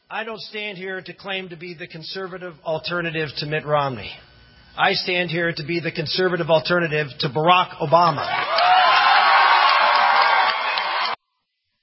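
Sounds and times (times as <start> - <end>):
speech: 0.1 - 8.7
crowd cheering: 8.2 - 11.2
scattered whoops: 8.3 - 11.2.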